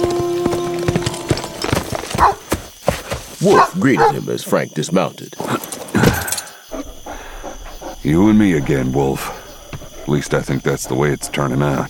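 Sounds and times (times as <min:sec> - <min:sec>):
horse hooves clip-clopping as rider leaves: 0:00.0 - 0:04.1
speech: 0:03.4 - 0:05.7, 0:08.1 - 0:09.4, 0:10.1 - 0:11.8.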